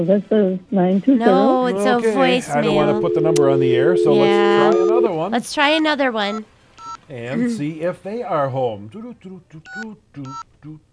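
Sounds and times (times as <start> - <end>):
speech: 0.0 - 6.5, 7.1 - 10.9
touch-tone dialing on a telephone: 2.6 - 5.1.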